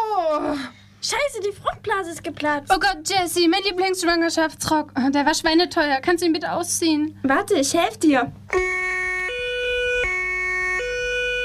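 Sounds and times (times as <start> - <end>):
speech: 0.4 - 8.7
ambulance siren: 8.5 - 11.4.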